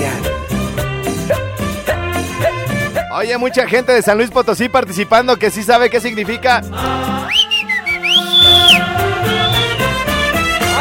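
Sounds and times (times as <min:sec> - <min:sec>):
lively music with instrumental backing: 0:00.0 - 0:10.7
speech: 0:03.2 - 0:07.4
human whistle: 0:07.2 - 0:10.2.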